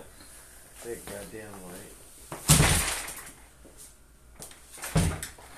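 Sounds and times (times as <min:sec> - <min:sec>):
speech: 0:00.8 - 0:02.0
chair being kicked: 0:02.3 - 0:03.4, 0:04.8 - 0:05.4.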